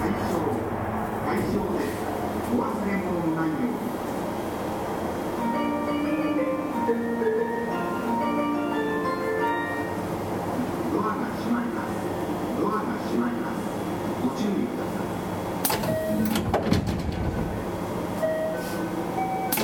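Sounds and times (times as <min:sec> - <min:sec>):
JR West 223 series Kansai Airport/Kishuji Rapid train on Osaka Loop Line: 0:00.0 - 0:19.6
clanks and rattles: 0:16.4 - 0:17.6.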